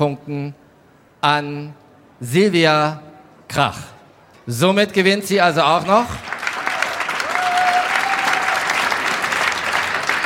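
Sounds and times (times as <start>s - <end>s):
speech: 0.0s - 0.6s, 1.2s - 3.9s, 4.5s - 6.3s
audience applause: 6.2s - 10.2s.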